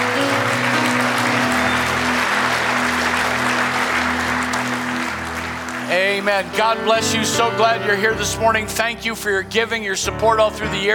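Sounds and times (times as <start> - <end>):
audience applauding: 0.0 - 8.0
speech: 6.0 - 10.9.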